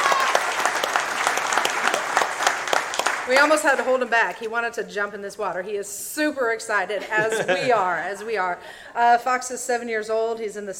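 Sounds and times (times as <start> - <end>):
crowd clapping: 0.0 - 4.0
speech: 3.3 - 10.7
laughter: 6.9 - 8.5.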